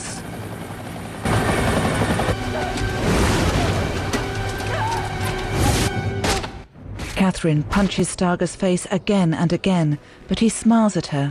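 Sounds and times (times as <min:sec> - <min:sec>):
helicopter landing rotor and engine roar: 0:00.0 - 0:05.5
speech: 0:07.3 - 0:11.2.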